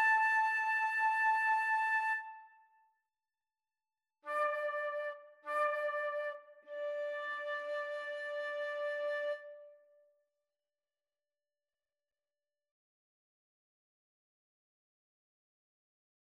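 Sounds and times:
flute duet: 0:00.0 - 0:02.6, 0:04.3 - 0:09.9.

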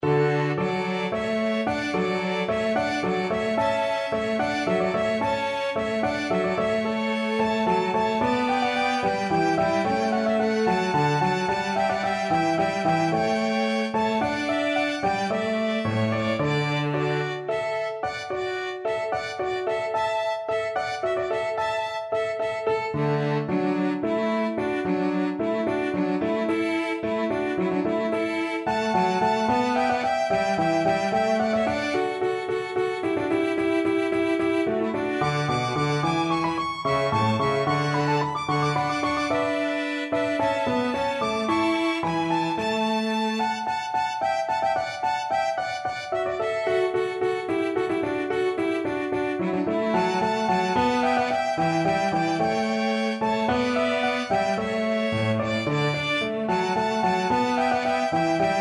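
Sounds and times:
piano quartet: 0:00.0 - 0:58.5.

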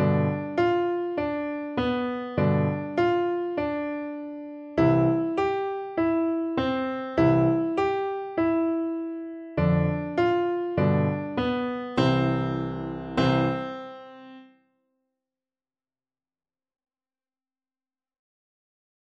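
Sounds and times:
piano duet: 0:00.0 - 0:14.6.

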